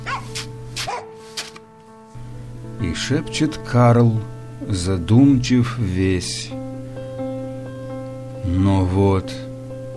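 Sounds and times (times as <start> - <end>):
dog barking: 0.0 - 1.2
low steady hum: 1.7 - 9.9
speech: 2.9 - 6.6, 8.5 - 9.5.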